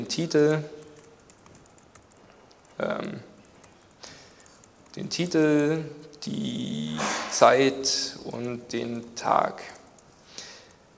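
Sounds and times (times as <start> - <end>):
speech: 0.0 - 0.8, 2.8 - 3.3, 5.0 - 9.8
computer keyboard clicking while someone types code: 0.6 - 5.2, 9.5 - 10.8.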